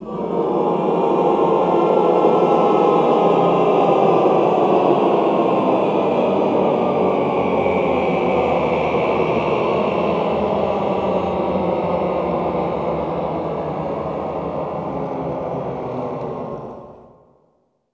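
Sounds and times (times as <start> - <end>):
classical choir cluster glissando descending: 0.0 - 17.2.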